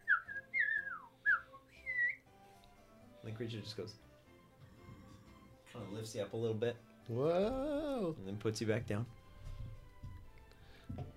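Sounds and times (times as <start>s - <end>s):
person whistling imitation of a small bird's call: 0.0s - 2.3s
speech: 3.2s - 4.1s, 5.7s - 9.2s.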